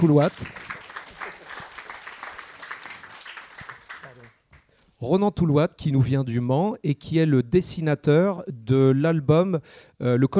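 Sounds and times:
speech: 0.0 - 0.7, 5.0 - 10.3
audience applause: 0.0 - 4.6.

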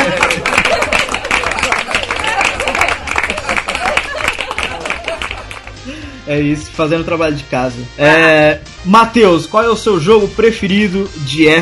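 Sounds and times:
laughter: 0.0 - 5.7
people clapping hands: 0.0 - 5.9
speech: 6.3 - 11.5.

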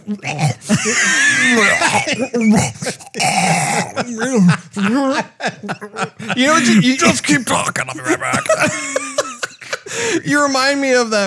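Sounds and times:
speech: 0.1 - 9.1, 9.9 - 11.2
laughter: 0.6 - 10.6
person coughing from something caught in throat: 0.7 - 4.2, 6.5 - 9.9.

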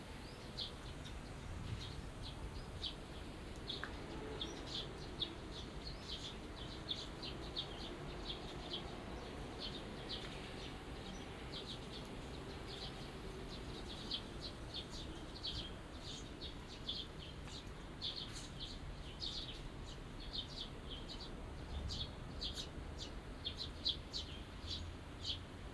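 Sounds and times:
birds chirping: 0.0 - 25.4.

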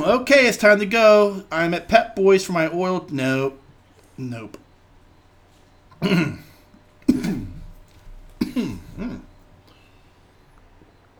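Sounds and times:
speech: 0.0 - 3.6, 4.2 - 4.6, 6.0 - 6.5
person clearing throat: 6.0 - 7.8, 8.4 - 9.4.

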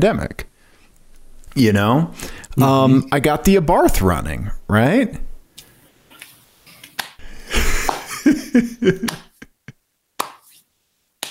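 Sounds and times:
speech: 0.0 - 0.5, 1.6 - 5.2, 8.5 - 9.3
person clapping hands: 7.0 - 8.2, 8.9 - 9.4, 10.2 - 10.5
laughter: 7.4 - 9.7.

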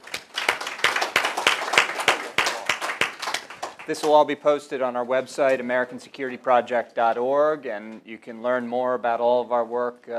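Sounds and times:
audience applause: 0.0 - 4.1
speech: 3.9 - 10.1.

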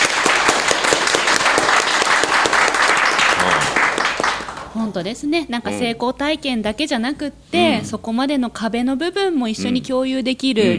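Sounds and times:
applause: 0.0 - 4.8
speech: 4.8 - 10.7.

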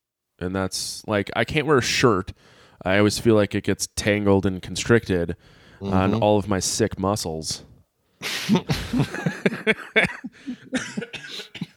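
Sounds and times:
speech: 0.4 - 11.7
laughter: 8.2 - 11.7
person coughing from a cold: 10.0 - 11.7.

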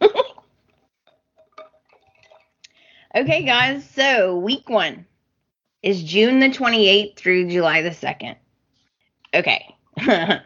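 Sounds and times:
person gulping water from a glass: 0.0 - 3.7
speech: 3.2 - 5.1, 5.8 - 8.4, 9.3 - 10.4.

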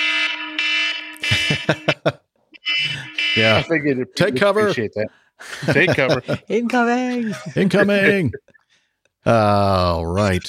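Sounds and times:
phone ringtone: 0.0 - 3.7
laughter: 1.2 - 2.2, 2.8 - 8.6
speech: 1.7 - 2.2, 2.8 - 8.6, 9.2 - 10.4.

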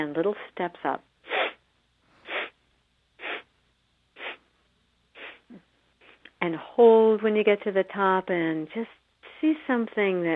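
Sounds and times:
speech: 0.0 - 1.1, 6.4 - 10.3
soft airy breath puffs during a guided breathing exercise: 1.2 - 2.6, 3.2 - 3.5, 4.2 - 6.3.

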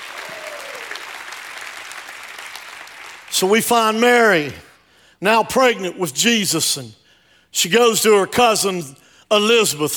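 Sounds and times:
audience shouting praise: 0.0 - 1.0
audience hand clapping: 0.0 - 3.3
speech: 3.3 - 9.9.

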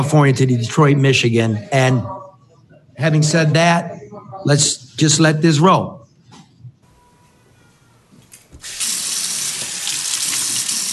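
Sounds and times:
speech: 0.0 - 2.2, 3.0 - 6.0
running sink tap water for washing hands: 8.6 - 10.9.

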